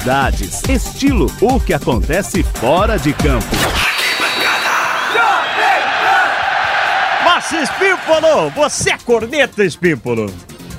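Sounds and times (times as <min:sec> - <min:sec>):
speech: 0:00.0 - 0:03.9, 0:07.4 - 0:10.7
crowd cheering in a program jingle: 0:02.6 - 0:09.0
people shouting: 0:03.1 - 0:08.8.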